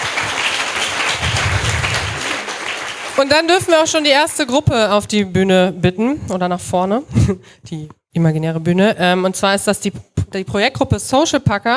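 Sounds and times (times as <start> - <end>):
applause: 0.0 - 4.5
speech: 3.2 - 11.7.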